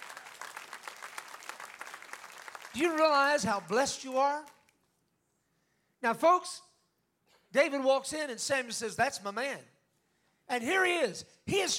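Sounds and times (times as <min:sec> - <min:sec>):
audience applauding: 0:00.0 - 0:04.5
speech: 0:02.8 - 0:04.6, 0:06.0 - 0:06.7, 0:07.5 - 0:09.7, 0:10.5 - 0:11.7.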